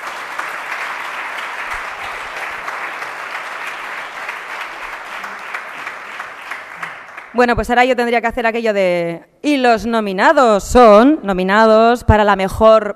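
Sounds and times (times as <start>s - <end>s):
audience applause: 0.0s - 7.4s
speech: 7.4s - 12.9s.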